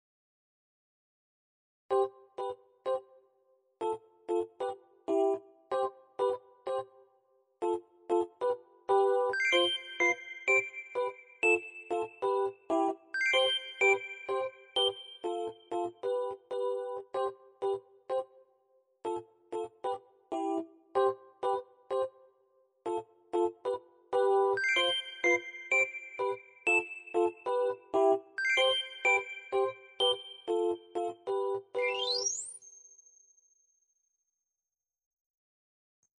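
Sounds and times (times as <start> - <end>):
music: 1.9 - 32.8.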